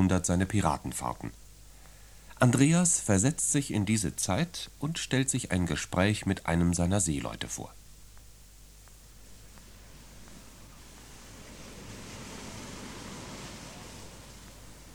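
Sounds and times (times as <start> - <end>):
speech: 0.0 - 1.4, 2.4 - 7.8
sea waves washing against the rocky coast of Rügen: 11.0 - 14.9.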